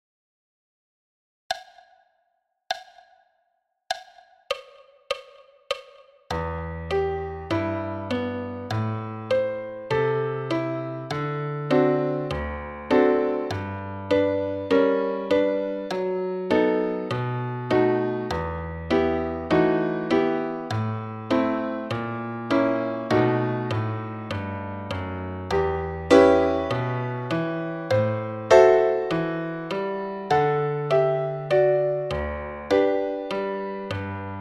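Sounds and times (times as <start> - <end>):
piano solo at 60 bpm: 6.3 - 34.4.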